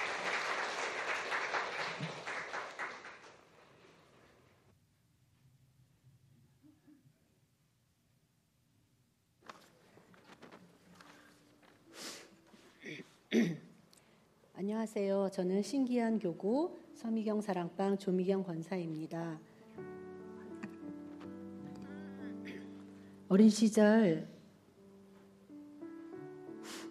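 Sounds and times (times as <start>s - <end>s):
audience applause: 0.0s - 3.7s
shuffling: 9.4s - 12.8s, 20.6s - 22.0s
throat clearing: 12.8s - 13.8s, 22.4s - 22.8s
speech: 14.8s - 19.9s, 23.4s - 24.3s.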